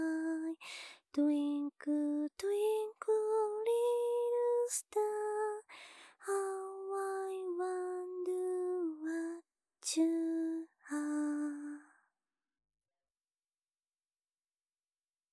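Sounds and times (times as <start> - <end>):
lullaby sung in English: 0.0 - 11.9.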